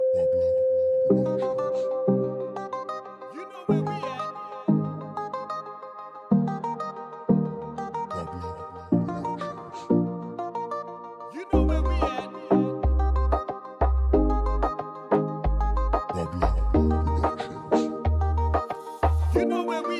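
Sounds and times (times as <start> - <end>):
Latin reggaeton music: 0.0 - 19.9.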